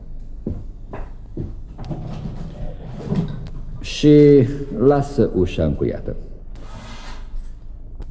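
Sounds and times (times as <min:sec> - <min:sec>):
window frame rattling and scraping: 0:01.9 - 0:03.8
speech: 0:04.0 - 0:06.3.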